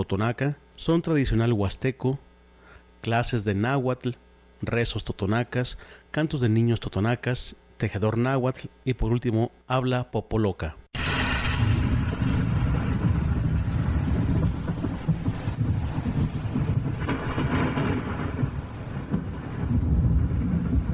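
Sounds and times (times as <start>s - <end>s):
speech: 0.0s - 2.3s, 3.0s - 10.9s
thunder rumbling: 11.0s - 20.9s.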